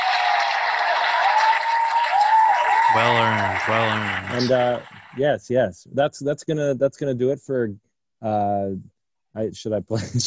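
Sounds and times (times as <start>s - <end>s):
applause: 0.0s - 5.2s
speech: 2.9s - 10.2s.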